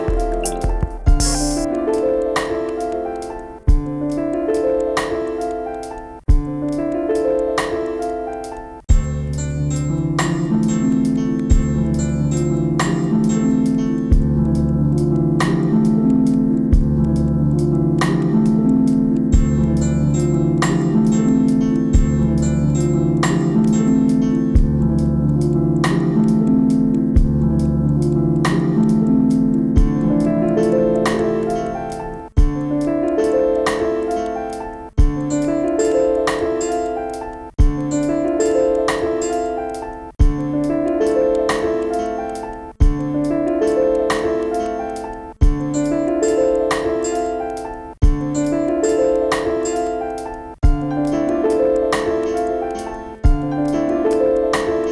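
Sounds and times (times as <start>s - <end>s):
piano song: 0.0s - 54.9s.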